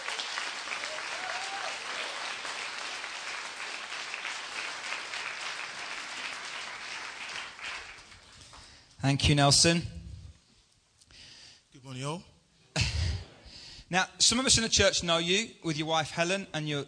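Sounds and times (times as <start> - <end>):
audience applause at a church welcoming a guest: 0.0 - 8.7
speech: 9.0 - 10.0, 14.2 - 16.8.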